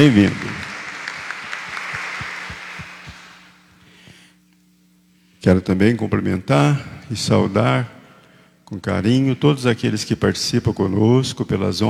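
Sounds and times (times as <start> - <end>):
speech: 0.0 - 0.4, 5.4 - 8.0, 8.7 - 11.8
crowd applause welcoming visitors: 0.0 - 3.7.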